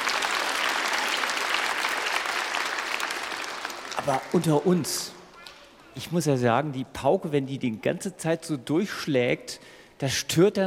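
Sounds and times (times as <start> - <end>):
audience applause: 0.0 - 4.9
speech: 4.0 - 5.2, 6.0 - 10.6.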